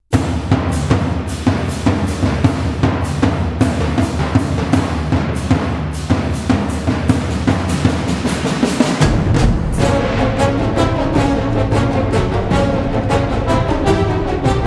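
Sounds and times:
string instrument: 0:00.1 - 0:14.6.

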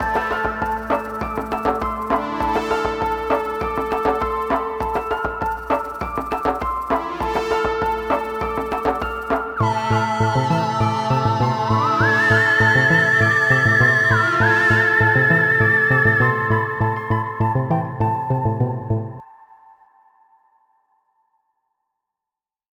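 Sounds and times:
musical stinger: 0:00.0 - 0:19.2.

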